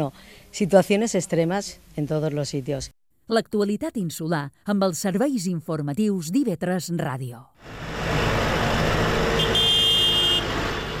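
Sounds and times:
speech: 0.0 - 7.9
tractors honking arriving at a fairground: 7.6 - 10.9.

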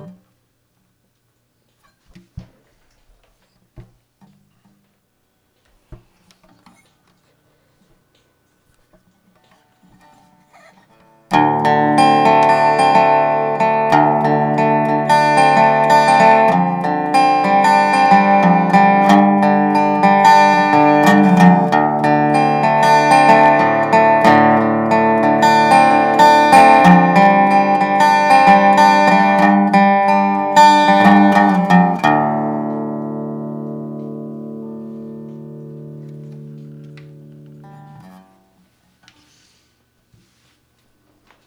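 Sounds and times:
dobro: 8.7 - 38.6.

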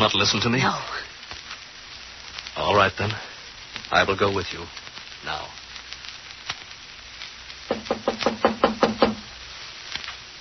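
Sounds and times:
speech: 0.0 - 1.1, 2.6 - 5.6
knocking on a door: 7.7 - 9.3.

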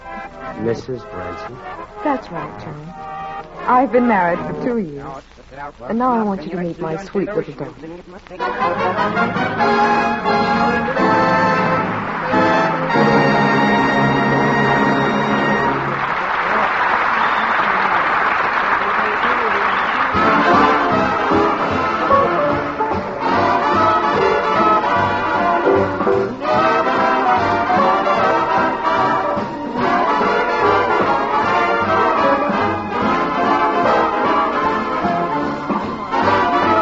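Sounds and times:
speech: 0.6 - 11.6
audience applause: 8.4 - 36.7.

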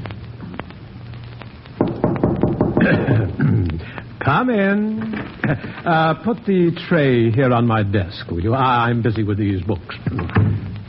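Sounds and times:
knock at the door: 1.8 - 2.9
speech: 4.3 - 10.7.

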